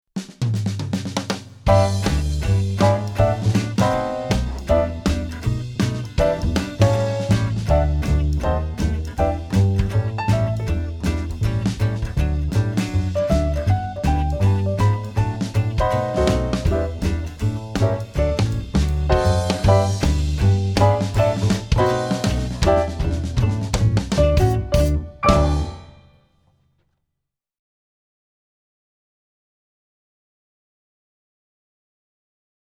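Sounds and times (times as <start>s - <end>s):
rhythm track: 1.7s - 26.0s.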